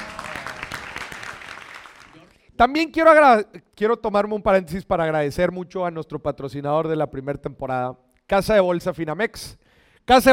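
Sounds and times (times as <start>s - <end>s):
loud audience applause: 0.0s - 2.4s
speech: 2.6s - 10.3s.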